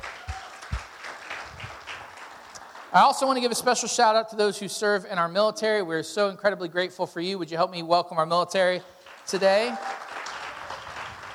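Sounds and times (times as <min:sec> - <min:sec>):
church congregation applause welcoming first-time guests: 0:00.0 - 0:03.6, 0:09.0 - 0:11.3
speech: 0:02.9 - 0:10.0.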